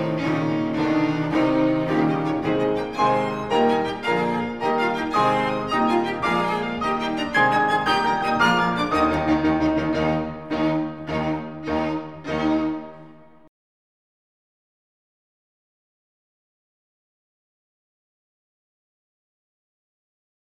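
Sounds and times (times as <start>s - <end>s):
chamber piano trio with strings playing: 0.0s - 13.5s.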